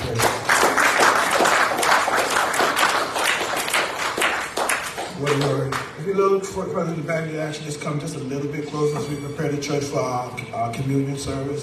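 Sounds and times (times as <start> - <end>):
audience clapping: 0.0 - 6.1
speech: 6.4 - 11.6.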